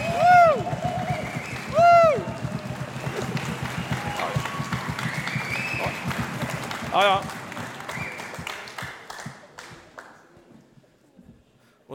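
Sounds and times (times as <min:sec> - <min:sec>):
cheering whoops: 0:00.0 - 0:06.2
church audience applause: 0:00.0 - 0:10.4.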